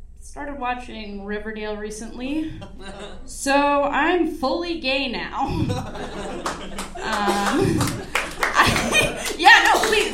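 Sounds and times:
speech: 0:00.4 - 0:08.1
chuckles and voices: 0:02.4 - 0:03.4, 0:05.4 - 0:10.1
scattered audience clapping: 0:05.8 - 0:10.1.

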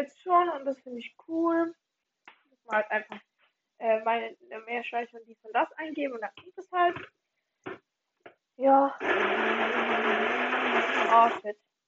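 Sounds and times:
speech: 0:00.0 - 0:01.8, 0:02.7 - 0:07.2, 0:08.6 - 0:11.7
blender making a smoothie: 0:09.0 - 0:11.4.

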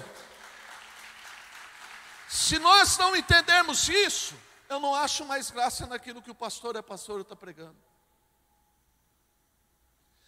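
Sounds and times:
audience applauding: 0:00.0 - 0:02.7
speech: 0:02.4 - 0:07.9.

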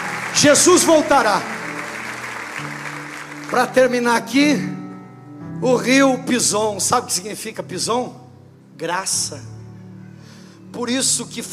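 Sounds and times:
audience applause: 0:00.0 - 0:04.2
speech: 0:00.4 - 0:01.6, 0:03.5 - 0:04.8, 0:05.6 - 0:08.2, 0:08.8 - 0:09.5, 0:10.7 - 0:11.5.

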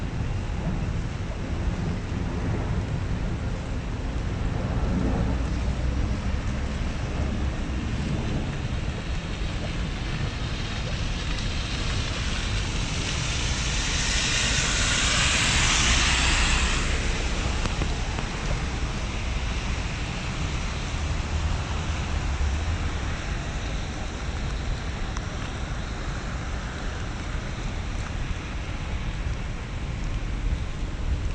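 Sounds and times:
low rumble: 0:00.0 - 0:31.3
steady rain in Central Park, Manhattan: 0:00.0 - 0:31.3.

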